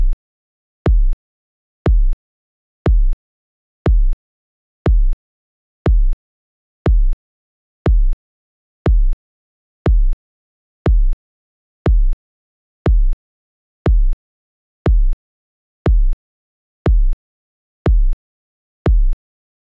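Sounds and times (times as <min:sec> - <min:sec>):
bass drum: 0:00.9 - 0:01.2, 0:01.9 - 0:02.2, 0:02.9 - 0:03.2, 0:03.9 - 0:04.2, 0:04.9 - 0:05.2, 0:05.9 - 0:06.2, 0:06.9 - 0:07.2, 0:07.9 - 0:08.2, 0:08.9 - 0:09.2, 0:09.9 - 0:10.2, 0:10.9 - 0:11.2, 0:11.9 - 0:12.2, 0:12.9 - 0:13.2, 0:13.9 - 0:14.2, 0:14.9 - 0:15.2, 0:15.9 - 0:16.2, 0:16.9 - 0:17.2, 0:17.9 - 0:18.2, 0:18.9 - 0:19.2.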